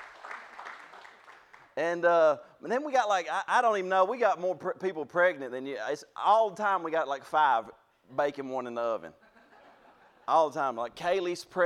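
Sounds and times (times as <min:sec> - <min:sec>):
soft golf clap: 0:00.0 - 0:01.8
speech: 0:01.8 - 0:09.2, 0:10.3 - 0:11.6.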